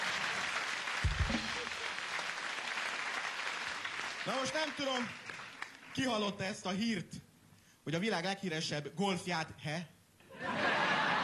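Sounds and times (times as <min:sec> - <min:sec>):
crowd applauding: 0:00.0 - 0:06.2
speech: 0:04.2 - 0:05.2, 0:06.0 - 0:07.2, 0:07.9 - 0:10.6
laughter: 0:10.3 - 0:11.2.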